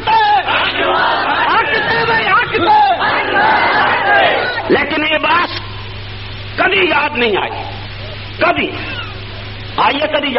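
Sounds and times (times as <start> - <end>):
crowd chanting in answer to a Nara-e-Takbeer call: 0.0 - 4.7
speech: 7.0 - 7.7, 8.4 - 8.9, 9.8 - 10.3.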